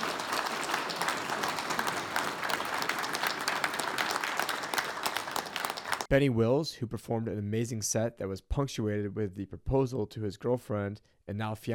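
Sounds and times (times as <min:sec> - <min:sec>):
heavy sustained applause from a large crowd: 0:00.0 - 0:06.1
speech: 0:06.1 - 0:11.7.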